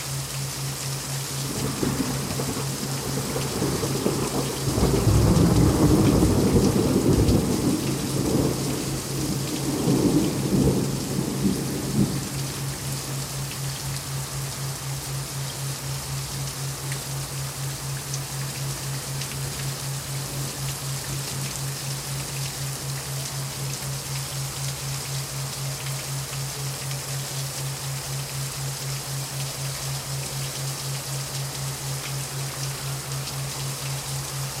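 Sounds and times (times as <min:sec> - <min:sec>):
thundering rainstorm: 0:00.0 - 0:34.5
thunder in a rainstorm: 0:01.5 - 0:08.9.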